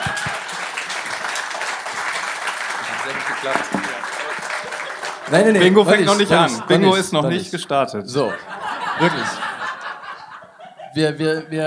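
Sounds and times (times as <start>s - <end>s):
live audience applause: 0.0s - 6.8s
laughter: 2.8s - 11.4s
speech: 3.1s - 4.5s, 5.3s - 9.4s, 10.9s - 11.6s.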